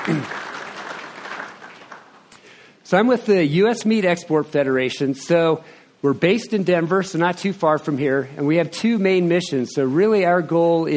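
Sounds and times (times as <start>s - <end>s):
audience round of applause: 0.0s - 2.3s
speech: 2.9s - 10.9s.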